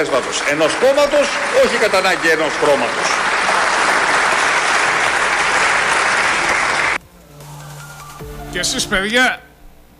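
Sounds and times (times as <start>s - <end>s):
speech: 0.0s - 3.4s, 8.6s - 9.4s
audience applause: 0.0s - 7.0s.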